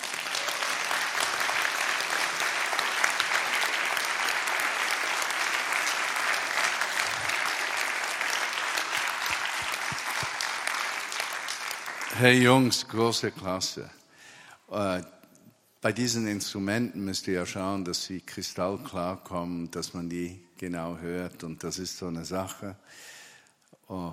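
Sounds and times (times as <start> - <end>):
audience applause: 0.0 - 12.6
speech: 12.2 - 14.0, 14.8 - 15.2, 15.8 - 23.1, 23.9 - 24.1.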